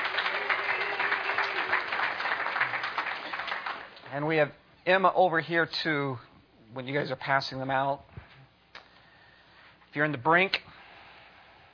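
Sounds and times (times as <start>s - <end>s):
audience applauding Sunday School children: 0.0s - 4.1s
speech: 4.1s - 8.1s, 10.0s - 10.6s.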